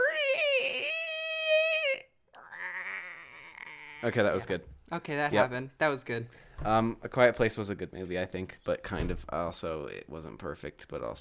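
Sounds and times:
person imitating a scream: 0.0s - 4.2s
speech: 4.0s - 11.1s.

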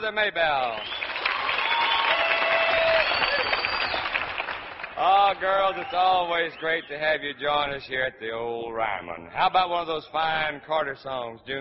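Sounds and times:
speech: 0.0s - 1.0s, 5.0s - 11.5s
crowd applauding to welcome performers: 0.6s - 6.3s.

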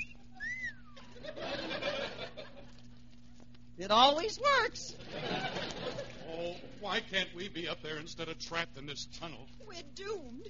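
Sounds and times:
man's wolf whistle: 0.0s - 1.0s
laughter: 0.4s - 2.9s, 5.0s - 6.8s
speech: 3.8s - 5.4s, 6.8s - 10.4s.

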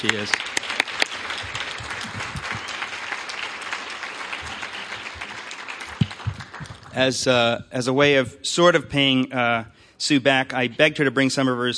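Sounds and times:
speech: 0.0s - 0.6s, 7.0s - 11.7s
audience applause: 0.0s - 7.3s.

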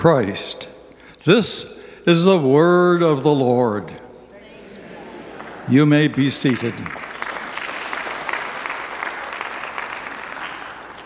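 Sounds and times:
speech: 0.0s - 4.0s, 5.7s - 7.1s
audience applauding: 4.6s - 11.0s.

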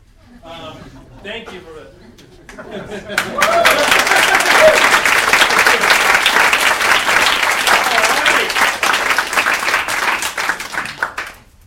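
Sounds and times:
laughter: 0.2s - 8.8s
speech: 1.2s - 4.2s
small audience clapping: 2.4s - 11.6s.

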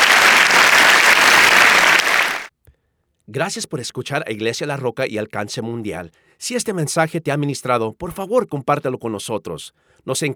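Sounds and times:
audience applause: 0.0s - 2.5s
speech: 3.3s - 10.3s.

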